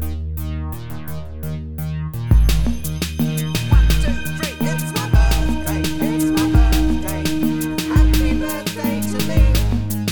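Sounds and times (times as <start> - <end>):
birthday song karaoke backing track: 2.3 - 10.1.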